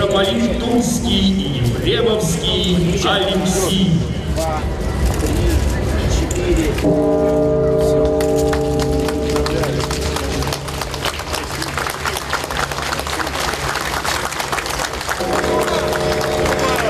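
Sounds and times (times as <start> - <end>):
speech: 0.2 - 5.6, 6.4 - 7.7
crowd murmur: 3.4 - 16.8
church bells ringing from a bell tower: 6.8 - 12.1, 15.2 - 16.8.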